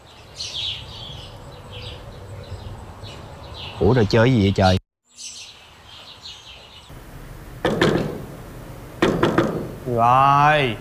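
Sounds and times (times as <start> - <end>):
speech: 3.8 - 4.8, 10.0 - 10.7
knocking on a door: 7.6 - 8.3, 9.0 - 9.8.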